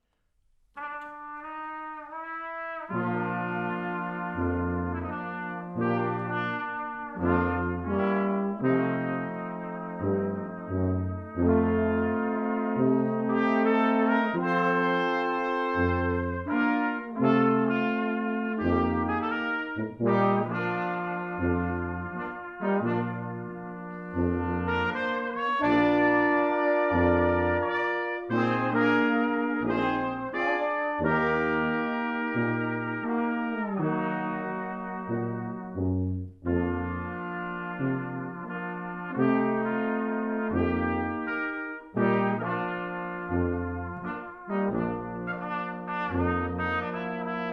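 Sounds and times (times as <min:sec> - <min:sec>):
tuba: 0:00.0 - 0:47.5
horn: 0:00.7 - 0:47.5
trumpet: 0:00.7 - 0:47.5
trombone: 0:00.8 - 0:47.5.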